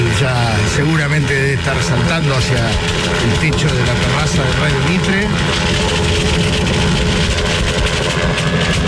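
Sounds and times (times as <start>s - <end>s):
helicopter arriving: 0.0s - 8.8s
speech: 0.8s - 8.8s.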